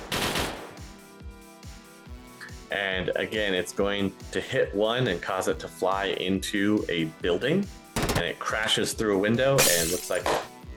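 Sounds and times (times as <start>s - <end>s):
three-round bursts of gunfire: 0.0s - 0.7s, 8.0s - 8.3s
speech: 2.7s - 10.5s.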